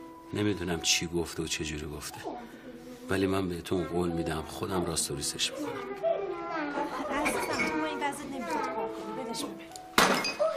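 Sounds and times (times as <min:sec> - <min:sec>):
speech: 0:00.3 - 0:06.1, 0:06.8 - 0:10.4
flowerpots smashing: 0:10.0 - 0:10.5.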